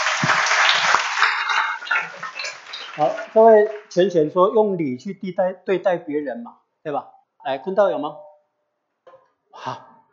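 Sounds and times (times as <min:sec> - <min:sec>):
audience applause: 0:00.0 - 0:04.1
speech: 0:03.0 - 0:08.3, 0:09.6 - 0:09.9.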